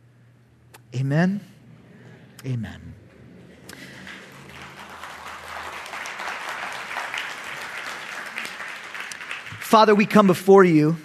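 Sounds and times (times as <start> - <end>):
speech: 0.9 - 1.5, 2.4 - 3.0, 9.7 - 11.0
audience clapping: 3.1 - 11.0.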